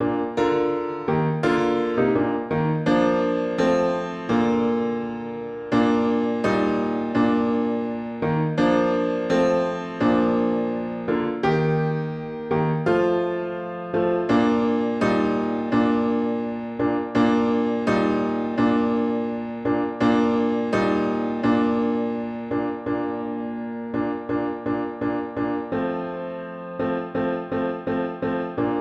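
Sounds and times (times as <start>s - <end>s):
piano: 0.0s - 28.7s.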